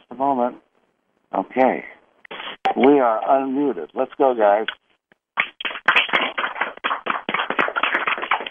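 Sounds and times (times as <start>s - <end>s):
speech: 1.6s - 2.0s, 2.8s - 4.8s
callers clapping over phone lines: 5.4s - 8.4s.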